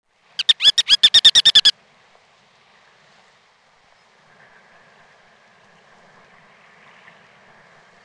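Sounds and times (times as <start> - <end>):
ruddy turnstone chattering call: 0.4 - 1.7.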